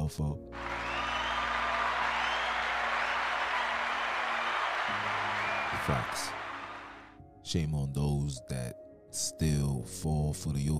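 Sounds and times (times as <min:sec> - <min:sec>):
speech: 0:00.1 - 0:00.7, 0:05.8 - 0:06.4, 0:07.5 - 0:10.7
applause: 0:00.5 - 0:07.2.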